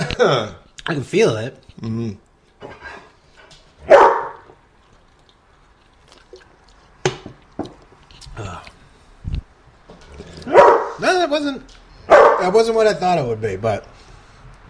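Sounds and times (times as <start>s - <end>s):
speech: 0.2s - 2.8s, 12.4s - 14.0s
dog barking: 3.8s - 4.5s, 10.4s - 11.0s, 12.1s - 12.6s
wet squishy mouth sounds: 4.9s - 7.0s.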